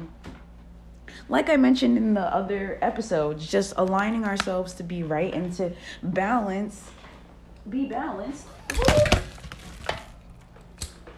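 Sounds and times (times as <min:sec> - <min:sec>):
speech: 0:01.3 - 0:07.0, 0:07.6 - 0:09.3
phone and objects falling over: 0:08.6 - 0:10.4.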